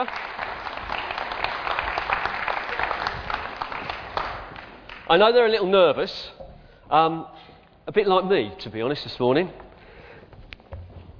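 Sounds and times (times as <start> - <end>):
speech: 0.0 - 0.2, 5.1 - 9.6
audience applause at a church service: 0.0 - 5.2.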